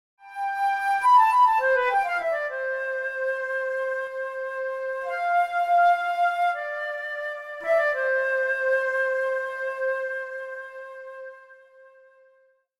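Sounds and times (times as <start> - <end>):
flute jingle: 0.2 - 12.3.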